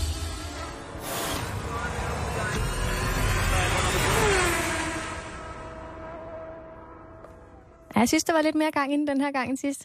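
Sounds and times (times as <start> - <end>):
Formula 1 car engines roaring: 0.0 - 7.9
speech: 8.0 - 9.8.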